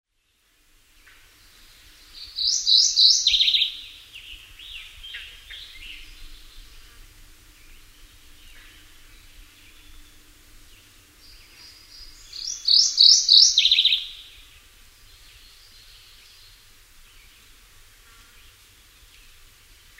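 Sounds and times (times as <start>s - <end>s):
mourning warbler song: 0.1s - 17.6s.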